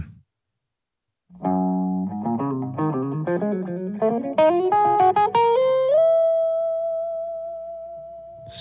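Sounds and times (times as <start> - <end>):
musical riff: 1.3 - 8.4.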